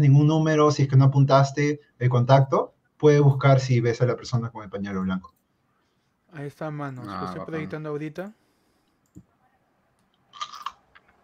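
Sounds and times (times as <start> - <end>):
speech: 0.0 - 5.4, 6.3 - 8.4
chewing crunchy food while eating: 10.2 - 11.2.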